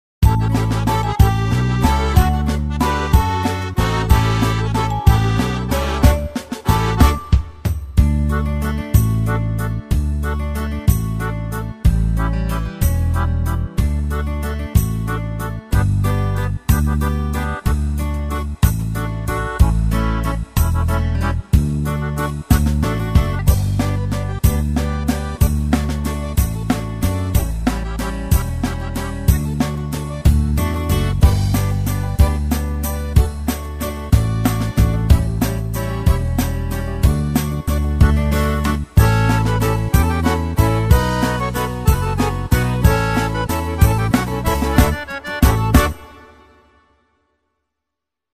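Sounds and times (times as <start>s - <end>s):
Schunkelwalzer from KORG styles: 0.2s - 7.4s, 8.0s - 46.7s.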